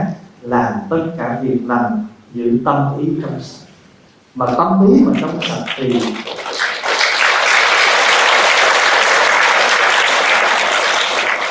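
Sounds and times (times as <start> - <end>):
speech: 0.0 - 3.7, 4.4 - 6.4
audience applause at a Buddhist dharma talk given by a monk: 5.2 - 11.4.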